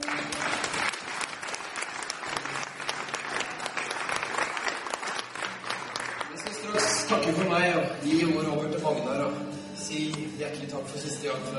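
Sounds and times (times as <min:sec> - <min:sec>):
audience applause: 0:00.0 - 0:07.1
speech: 0:07.1 - 0:11.5.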